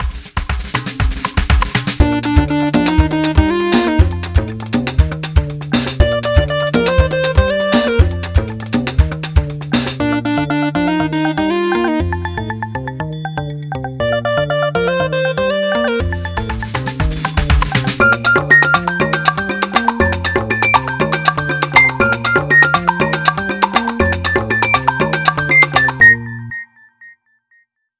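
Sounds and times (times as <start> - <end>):
Latin ringtone music: 1.2 - 26.9.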